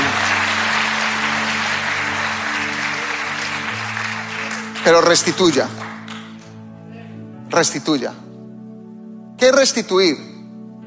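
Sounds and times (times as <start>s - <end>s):
audience applauding loudly: 0.0s - 6.6s
speech: 4.8s - 5.8s, 7.5s - 8.3s, 9.4s - 10.3s.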